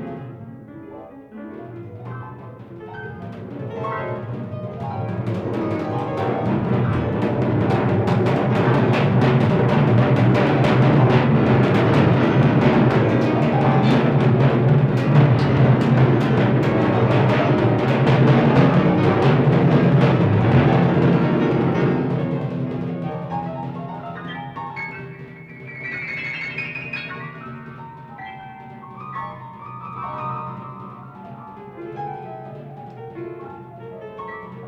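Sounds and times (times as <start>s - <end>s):
piano in a duet with percussion: 0.0s - 34.6s
percussion in a duet with piano: 1.8s - 34.6s.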